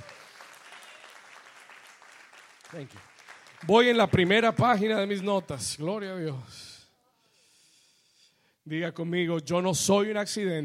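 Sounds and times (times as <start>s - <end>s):
audience applause: 0.0s - 5.2s
speech: 2.7s - 6.7s, 8.7s - 10.6s.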